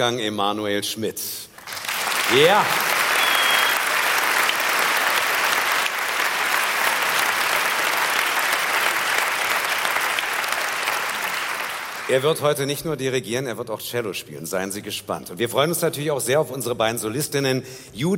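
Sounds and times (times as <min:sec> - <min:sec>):
speech: 0:00.0 - 0:02.9, 0:12.1 - 0:18.1
theater audience applauding an orchestra: 0:01.6 - 0:12.3.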